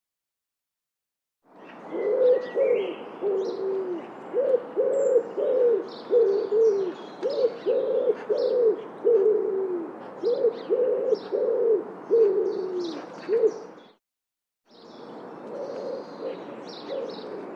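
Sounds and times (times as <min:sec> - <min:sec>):
bird giving low hollow cooing notes: 0:01.9 - 0:13.8, 0:15.4 - 0:17.5.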